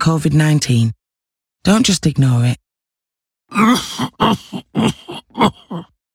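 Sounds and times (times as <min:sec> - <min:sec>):
speech: 0:00.0 - 0:01.0, 0:01.6 - 0:02.6, 0:03.5 - 0:05.9
persistent cough: 0:03.6 - 0:05.9.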